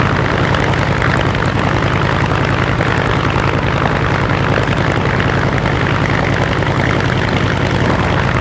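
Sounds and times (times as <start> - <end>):
engines: 0.0 - 8.3.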